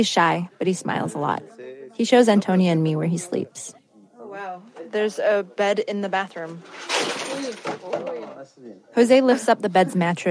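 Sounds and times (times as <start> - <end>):
speech: 0.0 - 3.8, 4.4 - 10.2
jar of coins knocked over: 6.7 - 7.8.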